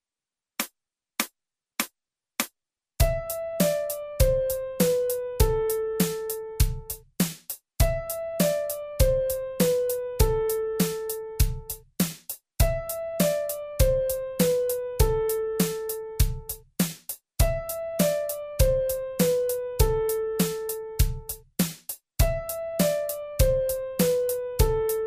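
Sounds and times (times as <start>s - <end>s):
piano: 3.0s - 7.0s, 7.8s - 11.8s, 12.6s - 16.6s, 17.4s - 21.4s, 22.2s - 25.0s.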